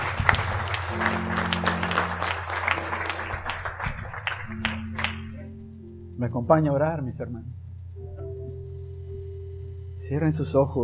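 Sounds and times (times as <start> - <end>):
audience applause: 0.0 - 5.5
low sustained organ or keyboard tone: 0.0 - 10.8
speech: 6.2 - 7.6, 10.1 - 10.8.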